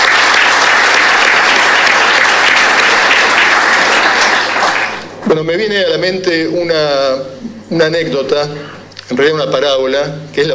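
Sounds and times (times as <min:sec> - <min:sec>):
crowd applause: 0:00.0 - 0:05.2
speech: 0:05.5 - 0:10.5.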